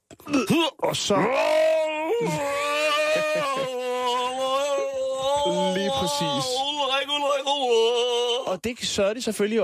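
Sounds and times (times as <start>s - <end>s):
retching vomiting cry from vomit simulator: 0.0s - 6.6s
speech: 0.5s - 3.9s, 5.4s - 9.6s
laughter: 2.2s - 4.9s.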